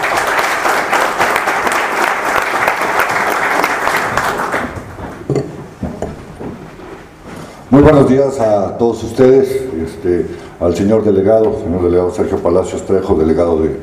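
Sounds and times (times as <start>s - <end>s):
audience applause: 0.0s - 5.2s
speech: 7.8s - 13.8s.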